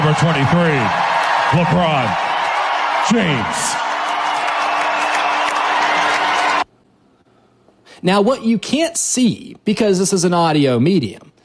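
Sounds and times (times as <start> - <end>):
arena crowd ovation: 0.0 - 6.7
speech: 0.1 - 2.2, 3.0 - 3.8, 8.0 - 11.4.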